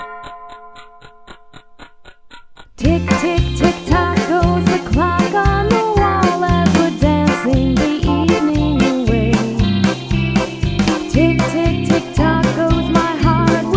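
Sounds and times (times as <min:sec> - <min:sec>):
polka music: 0:02.8 - 0:13.7.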